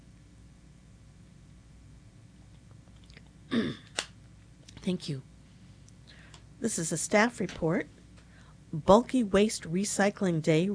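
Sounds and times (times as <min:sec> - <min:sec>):
person sipping a drink of water: 0:02.9 - 0:03.9
speech: 0:04.8 - 0:05.3, 0:06.6 - 0:08.0, 0:08.7 - 0:10.7.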